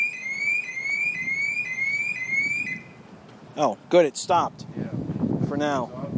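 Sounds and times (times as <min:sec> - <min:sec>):
car alarm: 0:00.0 - 0:03.0
speech: 0:03.6 - 0:04.8, 0:05.5 - 0:06.0.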